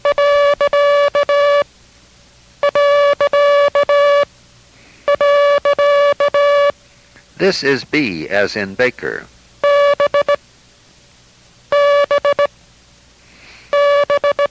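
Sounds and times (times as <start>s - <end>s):
Morse code beeps for the period character: 0.0s - 1.6s, 2.6s - 4.3s, 5.1s - 6.7s, 9.6s - 10.4s, 11.7s - 12.5s, 13.7s - 14.4s
speech: 7.4s - 9.4s.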